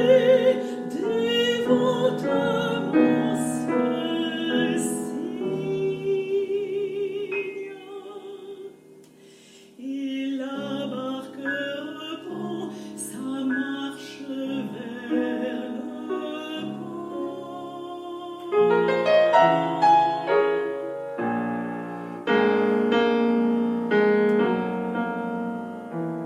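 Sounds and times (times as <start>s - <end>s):
mezzo-soprano singing: 0.0s - 26.2s
piano: 0.0s - 26.2s.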